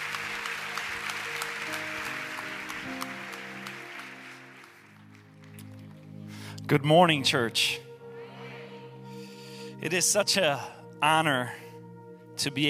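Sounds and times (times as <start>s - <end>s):
church congregation applauding: 0.0s - 6.6s
sustained instrumental chords: 0.1s - 12.4s
speech: 6.7s - 7.8s, 9.8s - 11.6s, 12.4s - 12.6s.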